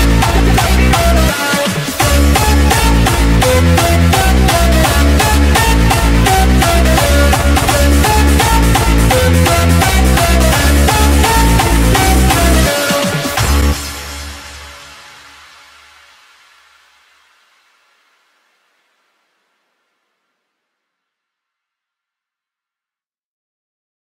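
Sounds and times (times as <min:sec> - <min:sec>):
hardstyle bootleg music: 0:00.0 - 0:16.5.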